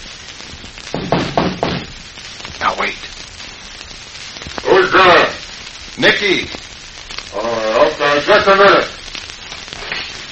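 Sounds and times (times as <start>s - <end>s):
knocking on a door: 0.9s - 1.9s
speech: 2.8s - 3.1s, 6.0s - 6.6s, 7.4s - 8.9s.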